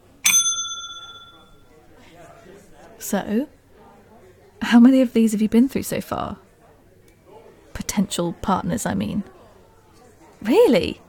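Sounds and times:
bell ringing: 0.0 - 1.6
speech: 3.0 - 3.6, 4.6 - 6.4, 8.0 - 9.4, 10.4 - 11.0.

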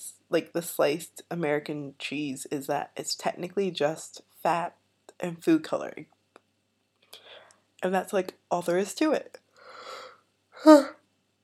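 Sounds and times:
speech: 0.3 - 6.2, 7.8 - 9.4, 10.6 - 11.0
yawn: 9.8 - 11.0.

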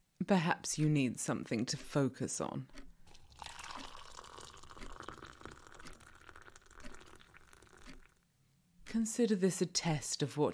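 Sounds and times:
speech: 0.3 - 2.8, 8.9 - 10.5
hot tea pouring into a cup: 3.1 - 8.2.

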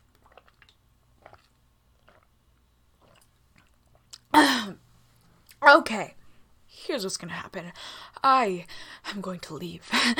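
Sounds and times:
person chugging a glass of whiskey: 0.0 - 4.5
speech: 5.7 - 10.1.

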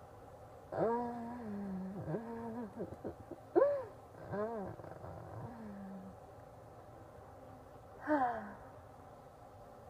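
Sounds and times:
woman orgasm moans: 0.8 - 6.1, 8.0 - 8.7.

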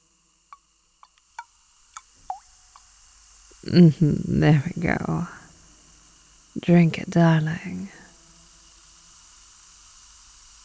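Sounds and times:
liquid drops dripping into a glass: 1.0 - 2.9
speech: 3.7 - 5.4, 6.6 - 8.0.

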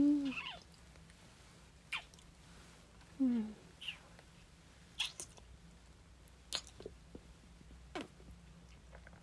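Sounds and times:
kissing: 0.2 - 0.7, 1.9 - 2.2, 3.8 - 4.1, 5.0 - 5.4, 6.5 - 6.8.

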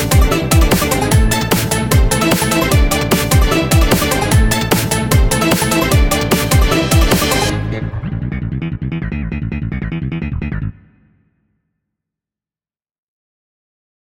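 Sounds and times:
slap bass machine: 0.0 - 11.0.

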